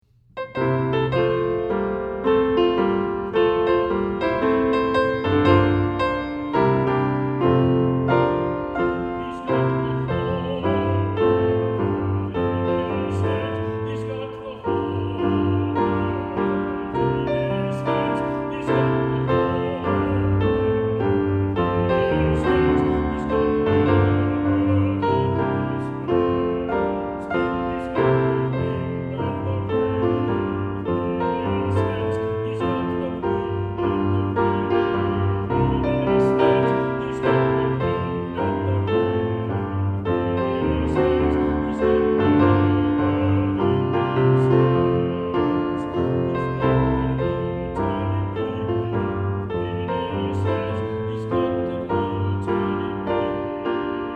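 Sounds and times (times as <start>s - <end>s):
piano: 0.0s - 54.1s.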